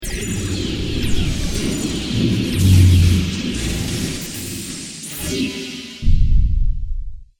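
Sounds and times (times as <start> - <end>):
space battle outside spaceship spacecraft sound effects: 0.0 - 5.9.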